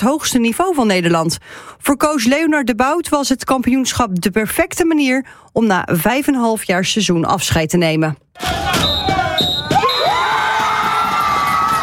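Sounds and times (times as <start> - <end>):
speech: 0.0 - 9.2
crowd cheering: 8.4 - 11.8
final referee whistle: 8.6 - 10.4.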